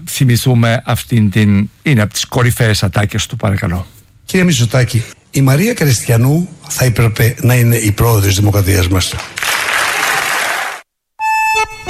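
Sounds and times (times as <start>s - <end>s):
speech: 0.1s - 9.5s
audience applauding: 9.1s - 10.8s
sustained musical tones: 11.2s - 11.8s.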